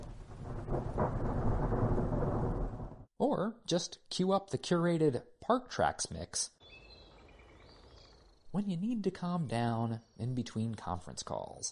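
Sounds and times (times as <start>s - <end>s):
thunderstorm thunder rumble at Big Bend: 0.0s - 3.1s
speech: 3.2s - 6.6s, 8.5s - 11.6s.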